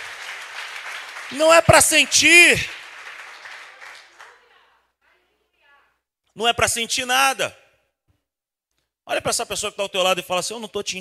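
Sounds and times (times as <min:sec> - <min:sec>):
audience applause: 0:00.0 - 0:04.6
speech: 0:01.3 - 0:02.8, 0:06.4 - 0:07.6, 0:09.1 - 0:11.0.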